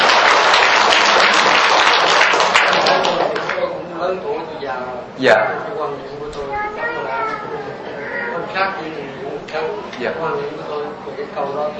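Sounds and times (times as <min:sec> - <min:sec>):
round of applause: 0:00.0 - 0:03.7
speech: 0:04.8 - 0:07.8, 0:08.5 - 0:11.7.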